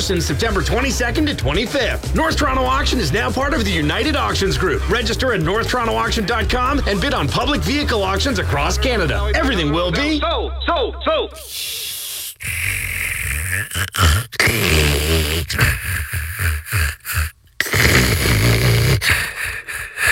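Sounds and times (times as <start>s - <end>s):
speech: 0.0s - 11.8s, 13.5s - 18.3s
loud snoring: 11.4s - 20.1s.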